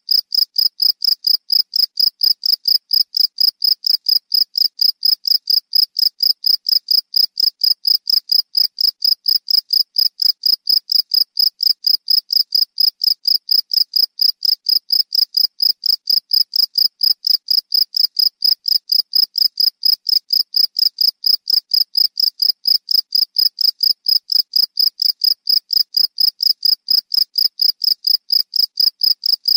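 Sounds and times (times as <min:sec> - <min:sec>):
cricket chirping: 0:00.1 - 0:29.5.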